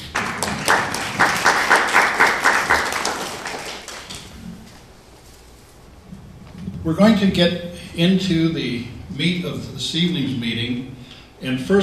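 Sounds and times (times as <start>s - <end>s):
meeting attendees applauding: 0.0s - 4.3s
speech: 6.9s - 11.8s.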